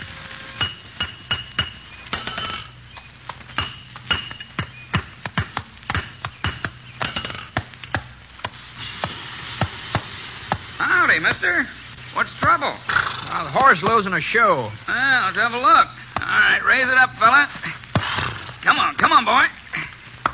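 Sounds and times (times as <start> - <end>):
low steady hum: 0.0 - 20.3
blacksmith hammering metal-on-metal: 0.6 - 10.7
speech: 11.2 - 17.7, 18.6 - 19.5.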